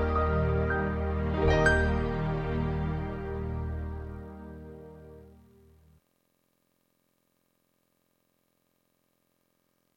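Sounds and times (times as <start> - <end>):
backing track: 0.0 - 5.6.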